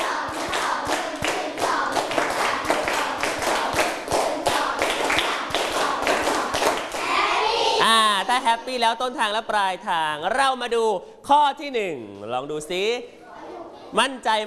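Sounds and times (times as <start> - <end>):
hand clapping: 0.0 - 7.2
speech: 8.4 - 13.2, 13.9 - 14.4.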